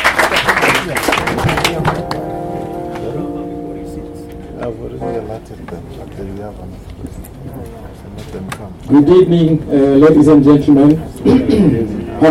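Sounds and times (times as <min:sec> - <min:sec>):
crowd clapping: 0:00.0 - 0:03.2
speech: 0:05.4 - 0:12.2.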